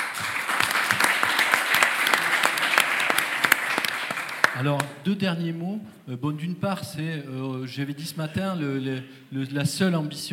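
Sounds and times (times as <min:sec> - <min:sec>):
audience applause: 0:00.0 - 0:05.0
speech: 0:04.6 - 0:10.3.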